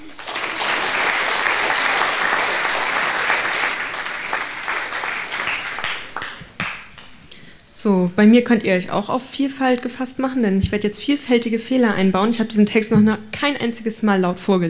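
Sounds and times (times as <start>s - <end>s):
applause: 0.0s - 7.2s
speech: 7.8s - 14.6s.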